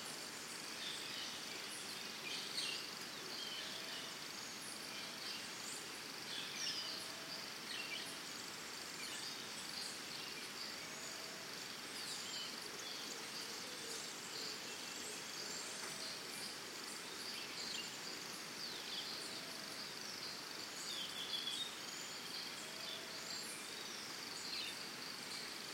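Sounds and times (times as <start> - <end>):
crickets trilling in early morning forest in Costa Rica: 0.0 - 25.7.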